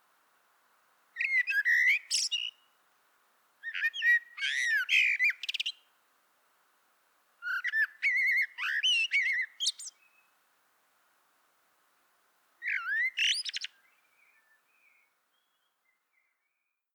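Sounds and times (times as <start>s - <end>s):
Common blackbird song: 1.2s - 2.8s, 3.6s - 5.9s, 7.4s - 10.4s, 12.6s - 16.9s.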